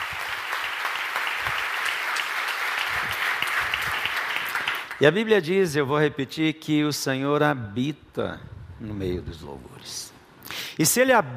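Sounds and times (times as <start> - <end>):
audience applause: 0.0 - 5.0
speech: 5.0 - 10.2, 10.8 - 11.3.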